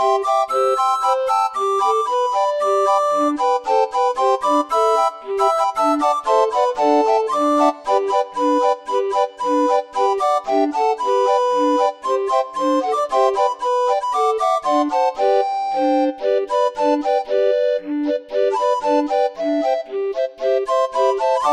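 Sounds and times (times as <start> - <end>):
barrel organ playing a Christmas tune: 0.1 - 21.5.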